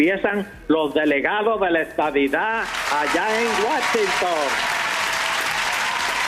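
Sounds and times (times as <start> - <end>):
speech: 0.0 - 4.8
applause: 2.6 - 6.2.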